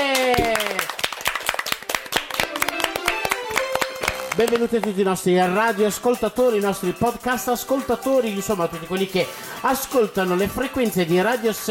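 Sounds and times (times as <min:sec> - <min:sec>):
applause: 0:00.0 - 0:05.0
speech: 0:04.4 - 0:11.7.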